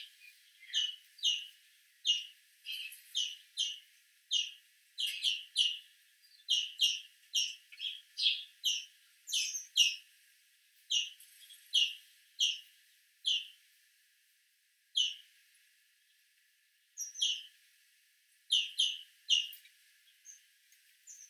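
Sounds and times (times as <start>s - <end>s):
European greenfinch Chloris chloris chirping: 0.0s - 10.0s, 10.9s - 13.6s, 15.0s - 15.3s, 17.0s - 17.5s, 18.5s - 20.4s, 21.0s - 21.2s.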